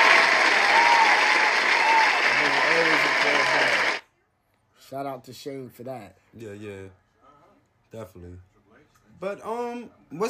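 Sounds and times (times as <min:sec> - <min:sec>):
crowd clapping: 0:00.0 - 0:04.0
speech: 0:04.9 - 0:07.0, 0:07.9 - 0:08.5, 0:09.2 - 0:10.2.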